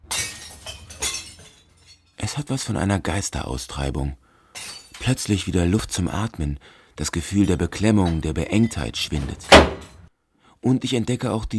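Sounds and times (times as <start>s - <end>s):
glass preserve jars smashing in a container: 0.0s - 2.2s, 4.6s - 5.4s, 7.4s - 10.0s
speech: 2.4s - 4.2s, 5.0s - 9.8s, 10.6s - 11.5s.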